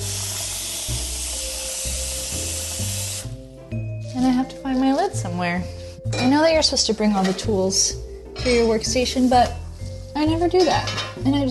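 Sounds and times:
water running into a cooking pot: 0.0s - 3.5s
speech: 4.2s - 9.6s, 10.2s - 11.5s.

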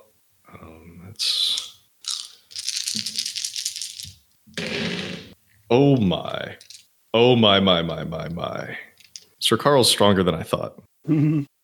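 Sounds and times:
many dice being rolled: 1.6s - 5.4s, 6.6s - 6.9s
speech: 5.7s - 11.5s.

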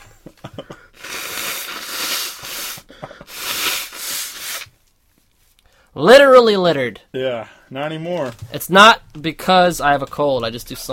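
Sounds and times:
person blowing their nose: 0.8s - 4.8s
speech: 6.0s - 10.9s.

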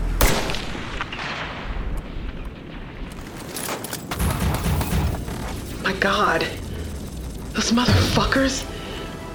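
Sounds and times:
sniper gunshot cracks from a tower: 0.2s - 1.8s
rumbling roar of battle noise: 0.2s - 9.2s
speech: 6.0s - 6.6s, 7.6s - 8.7s.

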